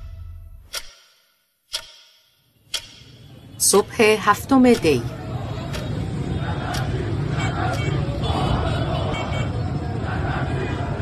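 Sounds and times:
low traffic rumble: 0:02.6 - 0:11.0
crowded shopping arcade street murmur: 0:03.5 - 0:11.0
speech: 0:03.6 - 0:05.2.

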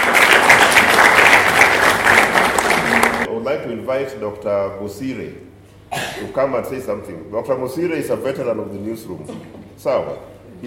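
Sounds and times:
audience applause: 0:00.0 - 0:03.3
speech: 0:03.7 - 0:10.6.

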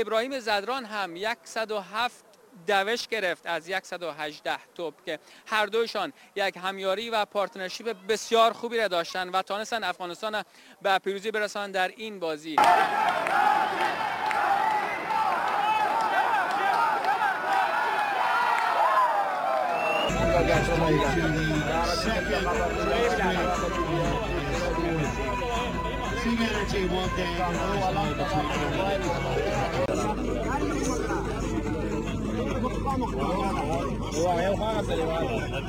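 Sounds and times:
speech: 0:00.0 - 0:14.2, 0:20.4 - 0:23.6, 0:26.2 - 0:31.2, 0:32.4 - 0:35.6
cricket fans cheering in stadium crowd: 0:12.6 - 0:25.7.

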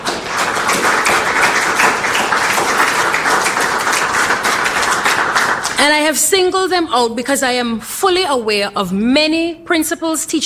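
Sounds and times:
audience applause: 0:00.0 - 0:05.8
speech: 0:05.8 - 0:10.4.

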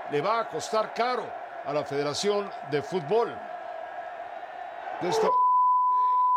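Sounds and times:
crowd chanting: 0:00.0 - 0:05.4
speech: 0:00.1 - 0:03.5, 0:05.0 - 0:05.4
censor beep: 0:05.3 - 0:06.3.

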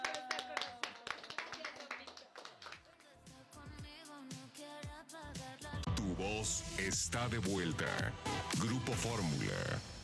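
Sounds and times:
applause: 0:00.0 - 0:03.2
speech: 0:06.2 - 0:09.9.

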